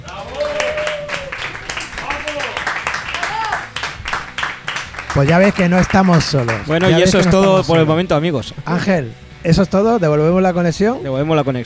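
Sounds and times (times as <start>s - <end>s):
applause: 0.0s - 7.7s
speech: 5.2s - 11.6s.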